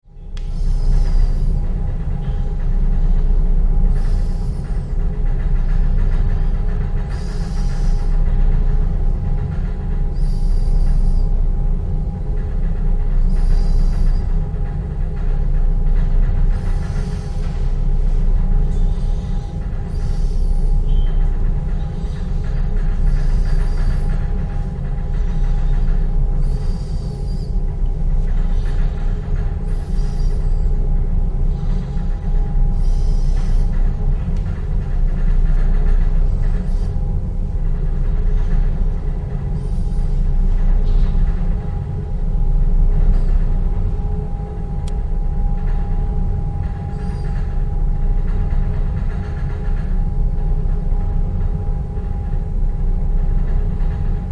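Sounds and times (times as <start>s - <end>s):
large ferry car deck vibrations: 0.2s - 54.3s.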